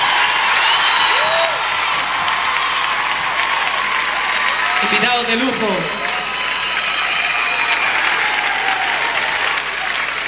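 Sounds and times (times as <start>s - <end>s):
crowd noise: 0.0s - 10.2s
loud sustained applause from a large audience: 0.0s - 10.2s
speech: 4.9s - 6.0s.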